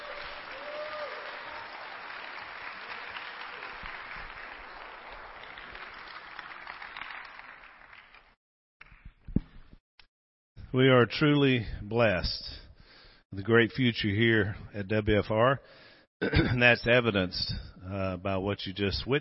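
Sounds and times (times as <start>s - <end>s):
audience applause: 0.0s - 8.4s
speech: 10.7s - 12.6s, 13.3s - 19.1s.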